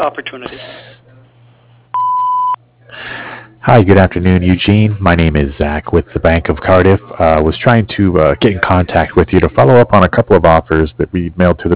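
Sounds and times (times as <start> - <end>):
speech: 0.0 - 1.0, 2.9 - 11.7
faint low hum: 0.0 - 11.7
voicemail answering machine tone: 2.0 - 2.6.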